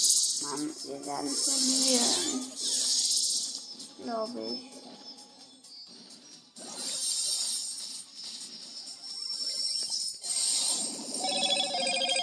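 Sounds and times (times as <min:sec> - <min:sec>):
speech: 0:00.0 - 0:02.7, 0:04.0 - 0:04.9
noisy wash of video game sound: 0:00.0 - 0:12.2
phone message notification tone chimes: 0:11.2 - 0:12.2.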